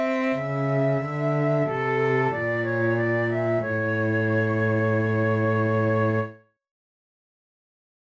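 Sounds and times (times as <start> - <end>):
adagio flute piece: 0.0 - 6.5.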